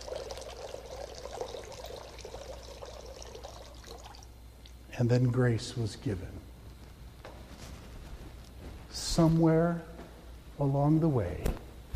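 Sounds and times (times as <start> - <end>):
water poured from a pitcher into a bowl during a baptism: 0.0 - 4.8
speech: 5.0 - 6.5, 9.2 - 9.9, 10.6 - 11.6.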